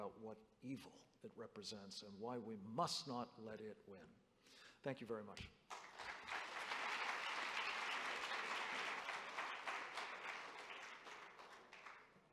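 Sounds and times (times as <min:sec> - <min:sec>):
speech: 0:00.0 - 0:05.6
audience applause: 0:05.7 - 0:12.2.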